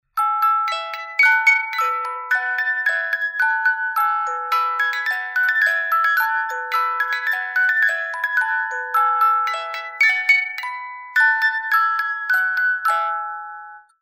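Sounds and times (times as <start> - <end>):
music box playing a tune: 0.1 - 14.0.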